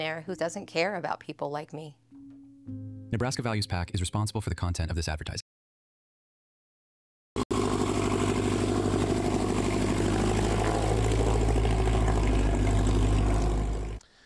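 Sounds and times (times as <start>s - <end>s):
speech: 0.0s - 2.0s, 2.6s - 5.4s
rotors and motors humming at a fly-in breakfast in northeast Nebraska: 7.5s - 14.0s.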